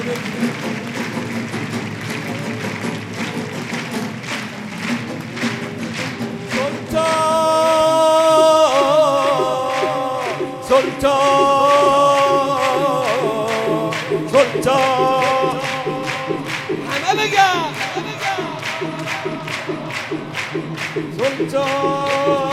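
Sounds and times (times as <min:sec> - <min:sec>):
devotional music honoring Imam Reza: 0:00.0 - 0:22.5
rhythmic hand clapping: 0:00.0 - 0:22.5
bright sustained synth layer: 0:07.3 - 0:22.5.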